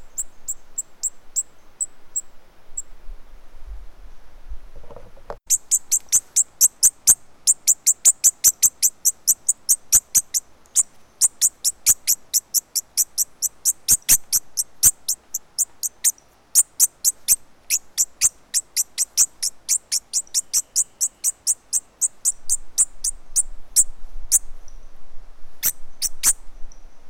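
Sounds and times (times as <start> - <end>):
faint background hiss: 0.0 - 27.0
bird ticking calls: 5.5 - 23.2.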